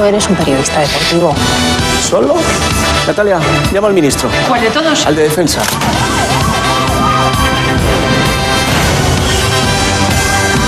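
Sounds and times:
speech: 0:00.0 - 0:06.3, 0:07.2 - 0:07.9
wailing alarm siren: 0:05.6 - 0:10.6.

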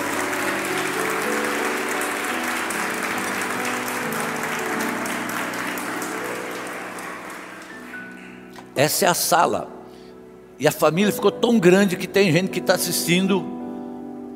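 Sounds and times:
audience clapping: 0:00.0 - 0:08.8
speech: 0:08.8 - 0:09.8, 0:10.6 - 0:13.6.

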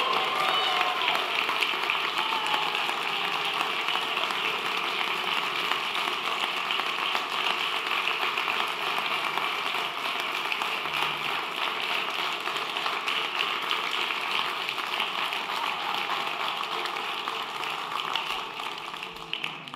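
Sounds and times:
audience clapping: 0:00.0 - 0:19.7.

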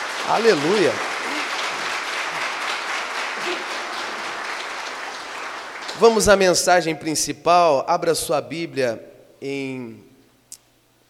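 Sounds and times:
audience applause: 0:00.0 - 0:06.5
speech: 0:00.3 - 0:01.1, 0:06.0 - 0:10.1.

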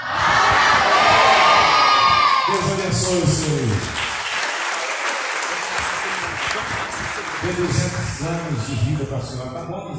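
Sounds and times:
children shouting: 0:00.0 - 0:02.6
church congregation cheering with loud whoops: 0:00.0 - 0:08.7
speech: 0:03.1 - 0:04.0, 0:07.4 - 0:09.9.

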